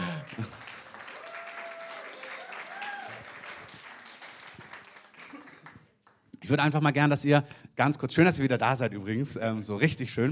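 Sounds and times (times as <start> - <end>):
audience applause: 0.0 - 6.2
speech: 6.5 - 10.2.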